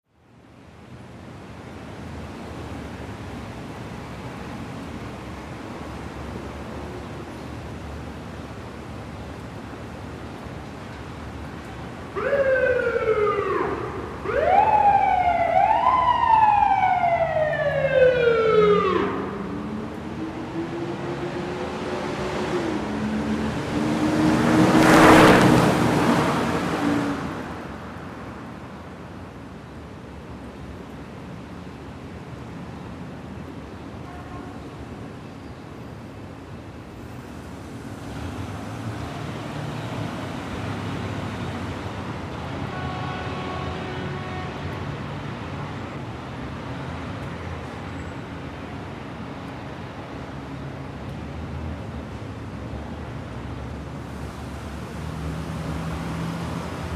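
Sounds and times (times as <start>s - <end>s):
city traffic in Georgetown D.C.: 0.0s - 56.9s
police car passing fast with siren: 12.2s - 21.1s.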